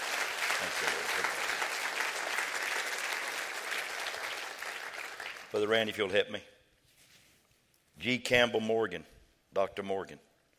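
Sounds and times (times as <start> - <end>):
audience clapping hands: 0.0 - 6.0
speech: 0.8 - 1.6, 5.5 - 6.6, 8.0 - 10.3.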